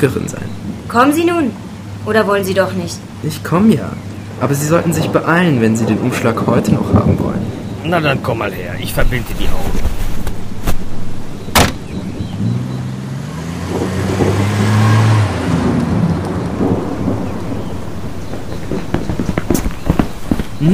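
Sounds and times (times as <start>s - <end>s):
speech: 0.0s - 10.0s
car driving away: 11.0s - 20.1s.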